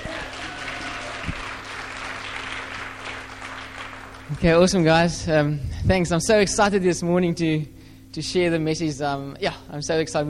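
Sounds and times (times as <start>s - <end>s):
audience applause welcoming a guest speaker at a church service: 0.0s - 4.6s
low constant hum: 0.0s - 10.2s
speech: 4.3s - 10.2s.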